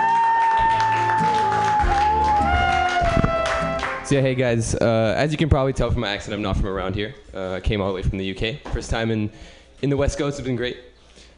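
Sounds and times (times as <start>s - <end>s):
audience applause: 0.0s - 4.1s
speech: 4.1s - 10.9s.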